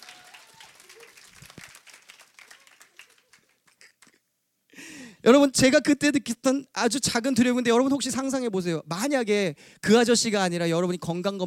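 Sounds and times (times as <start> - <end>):
audience applause: 0.0 - 4.2
speech: 5.2 - 11.4.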